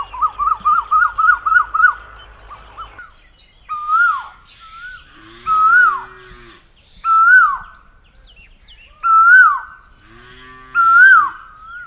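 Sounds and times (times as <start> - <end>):
bird ringing notes and whistles: 0.0 - 6.2, 7.0 - 7.8, 10.8 - 11.8.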